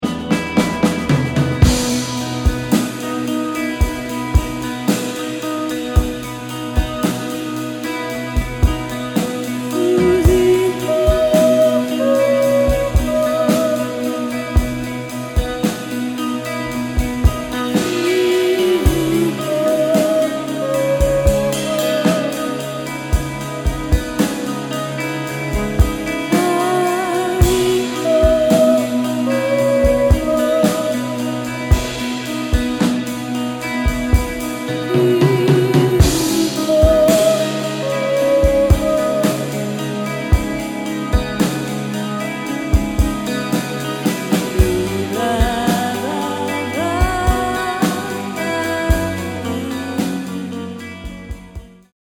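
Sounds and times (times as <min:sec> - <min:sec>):
blues music: 0:00.0 - 0:51.9.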